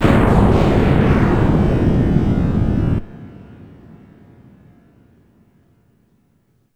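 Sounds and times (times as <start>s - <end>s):
thunder: 0.0s - 4.2s.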